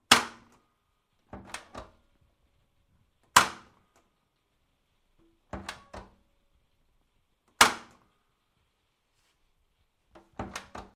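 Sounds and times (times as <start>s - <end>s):
washing machine door opening and closing: 1.3s - 2.0s, 5.5s - 6.2s, 7.6s - 8.0s, 10.2s - 10.9s.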